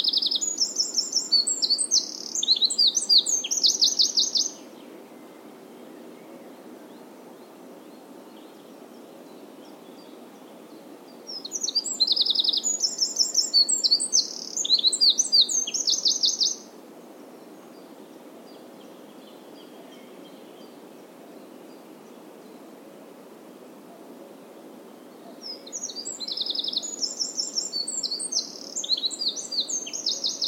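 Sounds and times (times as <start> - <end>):
Eurasian wren singing: 0.0 - 4.6, 11.3 - 16.7, 25.4 - 30.4
hiss: 0.0 - 30.4.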